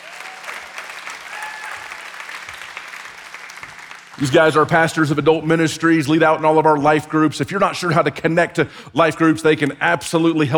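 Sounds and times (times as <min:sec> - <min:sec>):
church service audience applauding pastors welcomed to the stage: 0:00.0 - 0:04.7
speech: 0:04.2 - 0:10.5.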